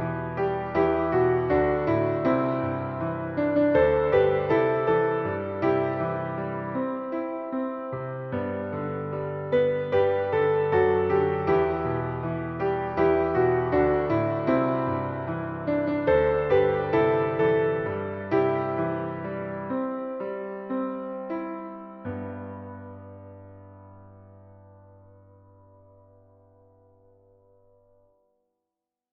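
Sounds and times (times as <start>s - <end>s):
piano: 0.0s - 28.4s.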